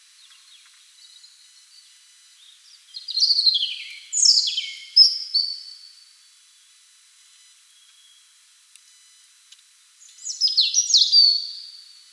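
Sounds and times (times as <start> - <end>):
European robin song: 0.2 - 5.9, 10.0 - 11.9
speech: 3.3 - 3.6.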